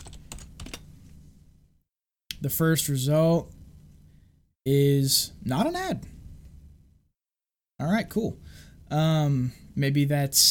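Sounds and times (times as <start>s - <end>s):
computer keyboard keystrokes typing Hak5 into a search engine: 0.0s - 0.8s
speech: 2.4s - 3.6s, 4.7s - 6.2s, 7.8s - 10.5s.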